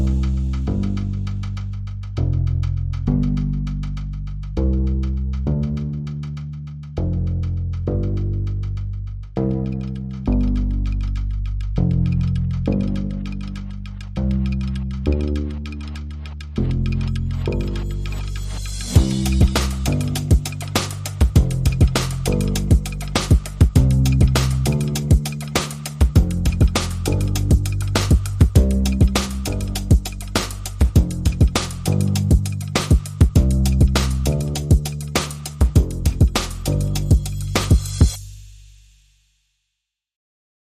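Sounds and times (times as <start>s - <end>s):
bass: 0.0s - 39.0s
drums: 16.6s - 39.0s.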